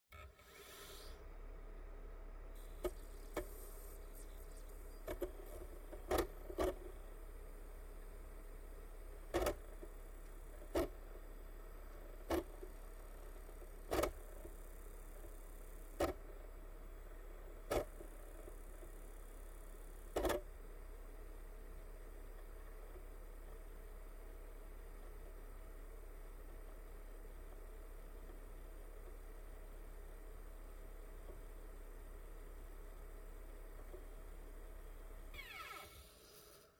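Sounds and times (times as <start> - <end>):
optical disk drive operating: 0.1 - 1.6, 2.3 - 36.7.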